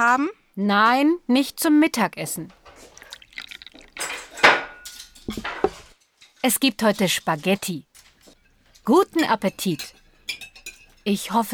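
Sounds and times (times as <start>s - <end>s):
speech: 0.0s - 2.6s, 5.3s - 5.6s, 6.4s - 7.9s, 8.8s - 10.0s, 11.0s - 11.5s
plates and cutlery clattering: 2.5s - 11.5s.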